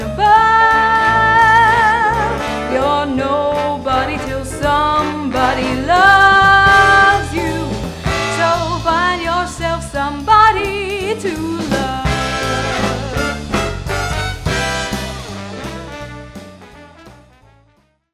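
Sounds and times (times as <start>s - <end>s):
vocals: 0.0s - 13.6s.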